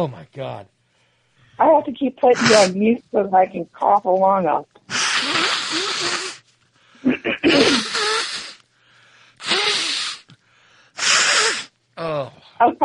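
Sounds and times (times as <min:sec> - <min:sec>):
speech: 0:00.0 - 0:00.8, 0:01.6 - 0:04.7, 0:12.6 - 0:12.8
person blowing nose: 0:02.4 - 0:02.7, 0:04.9 - 0:06.5, 0:07.4 - 0:08.6, 0:09.4 - 0:10.3, 0:11.0 - 0:11.8.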